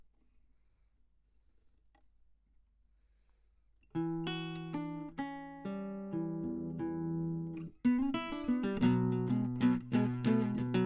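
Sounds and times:
classical guitar: 0:03.9 - 0:10.8.

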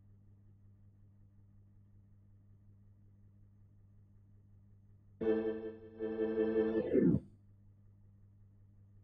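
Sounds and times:
Hammond organ: 0:05.2 - 0:07.2.

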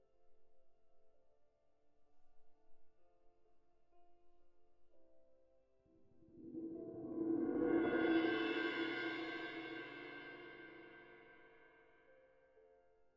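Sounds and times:
cymbal: 0:06.3 - 0:11.8.

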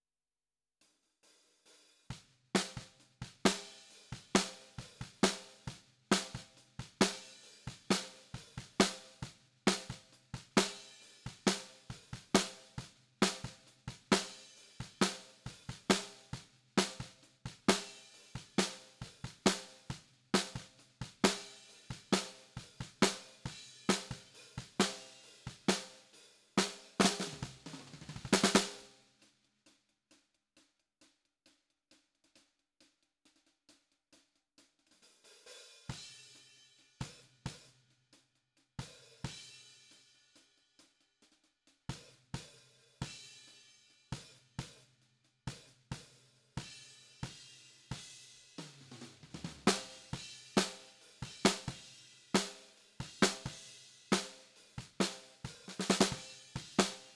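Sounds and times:
snare drum: 0:02.1 - 0:29.0, 0:45.5 - 0:57.1.

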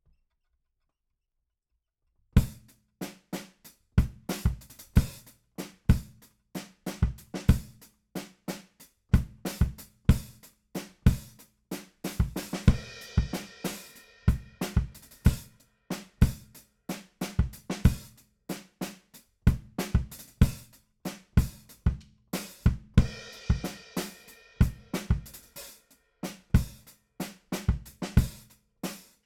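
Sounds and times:
bass drum: 0:02.4 - 0:02.7, 0:04.0 - 0:05.2, 0:06.9 - 0:07.8, 0:09.2 - 0:10.4, 0:12.1 - 0:13.5, 0:14.3 - 0:15.5, 0:17.2 - 0:18.2, 0:19.5 - 0:20.7, 0:21.4 - 0:25.5, 0:27.6 - 0:28.5.

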